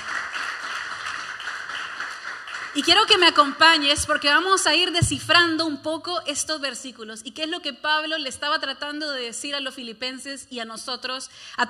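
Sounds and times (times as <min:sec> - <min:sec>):
audience applauding: 0:00.0 - 0:03.8
speech: 0:02.8 - 0:11.6.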